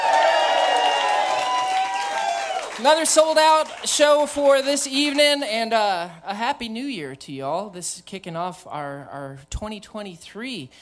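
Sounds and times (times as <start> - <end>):
sold-out theater crowd cheering and whooping: 0.0 - 2.9
sold-out theater crowd applauding: 0.0 - 5.2
speech: 2.8 - 10.8.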